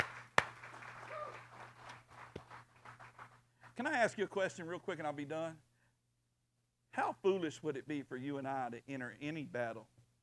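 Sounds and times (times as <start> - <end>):
soft scattered applause from a crowd: 0.0 - 3.5
speech: 3.8 - 5.7, 7.0 - 10.0.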